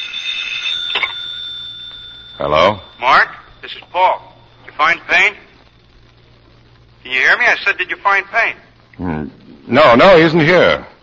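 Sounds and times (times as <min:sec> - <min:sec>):
telephone ringing: 0:00.0 - 0:06.4
speech: 0:02.4 - 0:05.5, 0:07.0 - 0:10.9.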